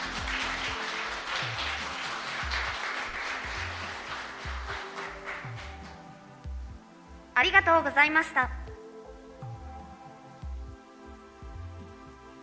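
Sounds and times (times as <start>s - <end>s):
audience applause: 0.0s - 6.2s
speech: 7.4s - 8.6s.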